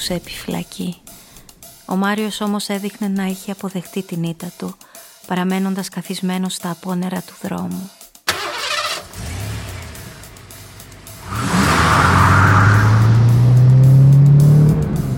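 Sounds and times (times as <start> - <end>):
speech: 0.0 - 1.2, 1.9 - 8.0
car engine starting and driving off: 8.3 - 15.1.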